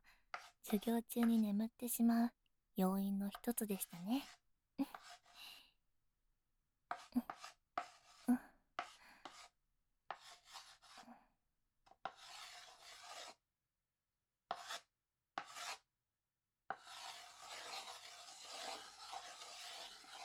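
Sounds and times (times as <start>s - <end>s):
chalk writing on a blackboard during a class: 0.3s - 1.4s, 3.4s - 5.4s, 6.9s - 11.1s, 11.9s - 13.4s, 14.5s - 15.9s, 16.7s - 20.2s
speech: 0.7s - 5.2s, 7.1s - 7.6s.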